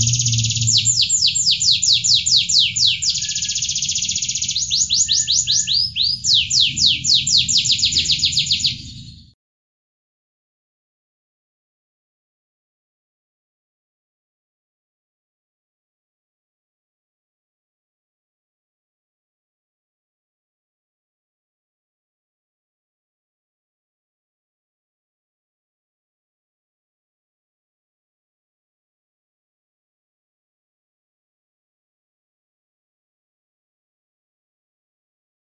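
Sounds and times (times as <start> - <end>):
standard canary singing in kapal oleng style: 0.0 - 9.3.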